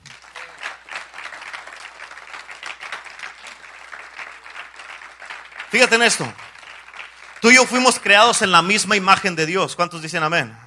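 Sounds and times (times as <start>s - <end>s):
audience applauding: 0.0s - 9.1s
speech: 5.7s - 6.5s, 7.4s - 10.6s.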